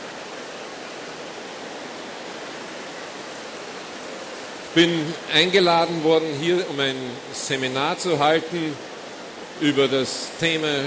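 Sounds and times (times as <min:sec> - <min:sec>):
rain falling outside: 0:00.0 - 0:10.8
speech: 0:04.7 - 0:08.9, 0:09.6 - 0:10.8.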